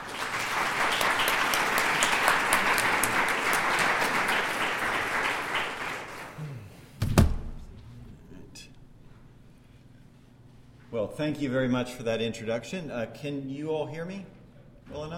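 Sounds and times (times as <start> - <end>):
audience applause welcoming a lecturer at an evening talk on earthquake disasters: 0.0 - 6.5
speech: 11.2 - 14.4, 15.0 - 15.1.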